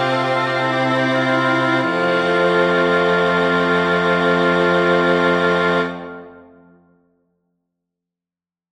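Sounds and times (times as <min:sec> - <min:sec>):
chorale for oboe and strings: 0:00.0 - 0:06.8.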